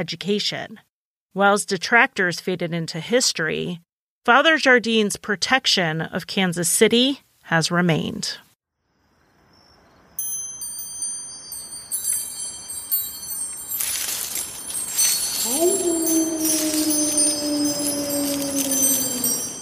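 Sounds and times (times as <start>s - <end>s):
speech: 0.0s - 8.4s
wind chimes: 9.6s - 19.6s.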